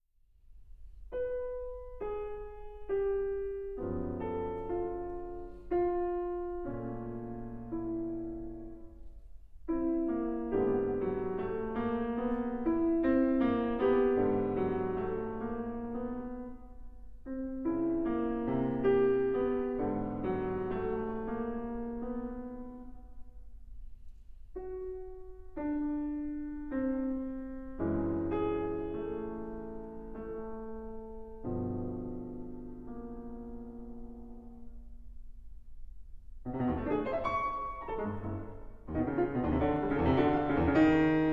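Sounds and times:
piano piece: 0.5 - 41.3.

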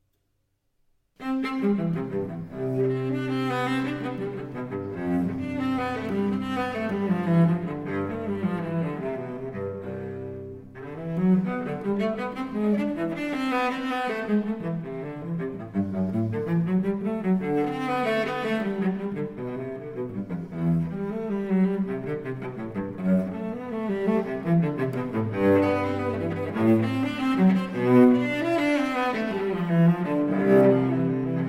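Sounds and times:
solo cello piece: 1.2 - 31.4.

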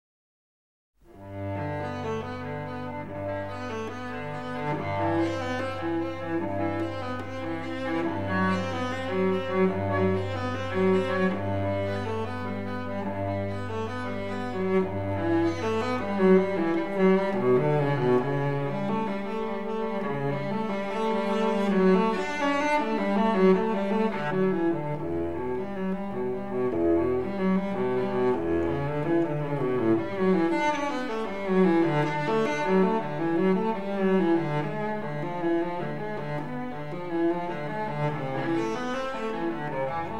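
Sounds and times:
solo cello prelude in G major: 1.0 - 40.1.

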